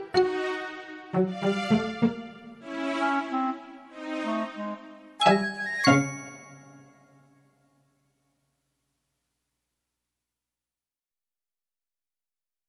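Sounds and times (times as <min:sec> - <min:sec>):
cartoon suspense music: 0:00.0 - 0:06.2.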